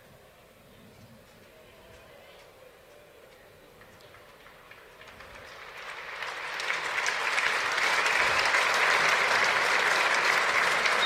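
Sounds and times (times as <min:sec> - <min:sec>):
stadium crowd applause: 0:03.8 - 0:11.0.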